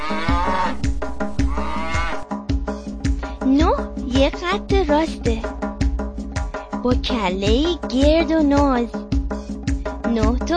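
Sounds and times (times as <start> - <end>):
cows mooing: 0.0 - 2.2
rhythmic musical backing: 0.0 - 10.5
speech: 4.3 - 5.6, 6.8 - 9.0, 10.1 - 10.5.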